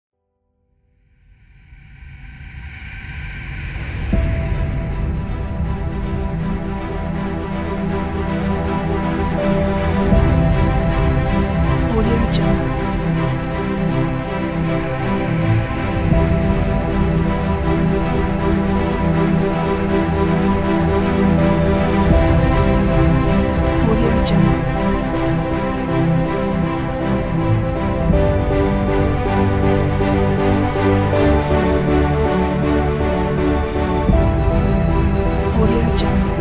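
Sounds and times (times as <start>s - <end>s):
epic cinematic adventure title music: 1.3s - 36.3s.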